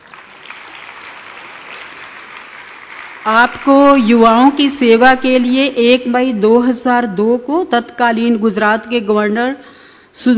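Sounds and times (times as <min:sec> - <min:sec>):
crowd clapping: 0:00.0 - 0:05.2
speech: 0:03.2 - 0:10.3.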